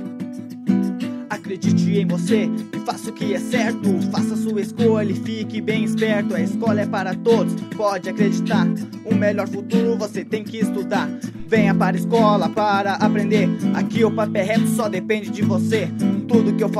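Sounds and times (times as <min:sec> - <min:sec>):
rap jingle: 0:00.1 - 0:16.7.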